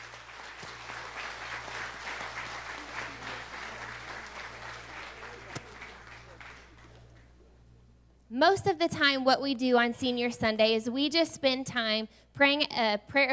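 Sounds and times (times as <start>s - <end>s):
audience applauding: 0.0s - 7.4s
speech: 8.4s - 13.3s.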